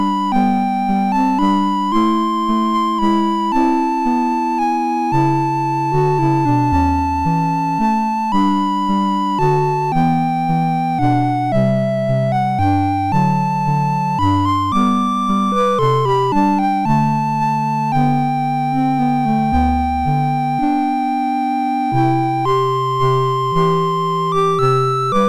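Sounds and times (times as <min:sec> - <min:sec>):
chiptune music on a MOS6581R3 sound chip: 0:00.0 - 0:25.2.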